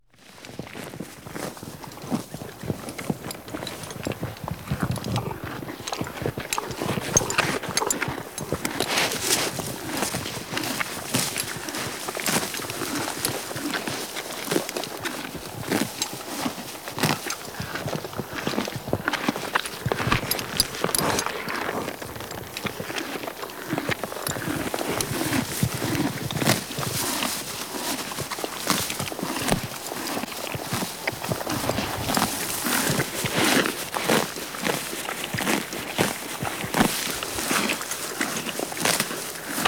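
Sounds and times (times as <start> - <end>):
horse eating grass: 0.1 - 39.6.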